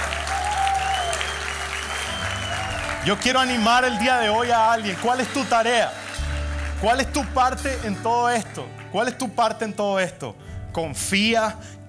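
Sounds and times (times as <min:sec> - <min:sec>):
audience applause: 0:00.0 - 0:07.8
speech: 0:03.0 - 0:06.0, 0:06.8 - 0:11.8.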